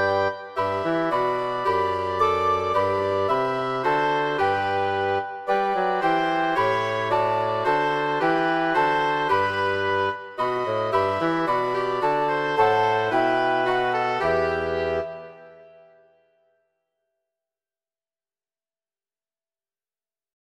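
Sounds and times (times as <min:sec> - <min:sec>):
wind quartet playing: 0:00.0 - 0:15.8.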